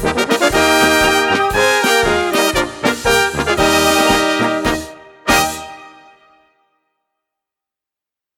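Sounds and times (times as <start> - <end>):
polka music: 0.0 - 6.4.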